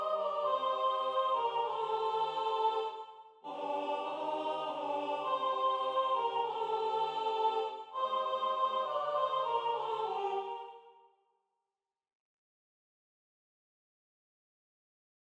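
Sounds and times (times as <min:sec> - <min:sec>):
soprano singing: 0:00.0 - 0:10.9.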